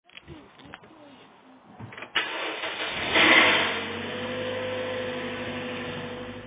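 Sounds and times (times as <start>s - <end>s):
2010 Toyota Corolla engine starting: 2.1s - 6.4s.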